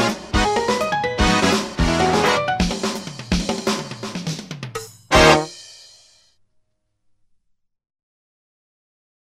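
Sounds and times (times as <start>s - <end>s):
jazz music: 0.0s - 4.2s, 5.0s - 5.8s.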